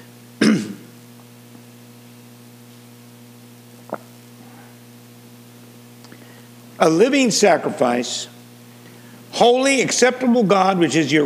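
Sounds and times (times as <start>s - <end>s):
rough throat clearing during a sermon: 0.4s - 1.0s
speech: 6.8s - 8.3s, 9.4s - 11.2s.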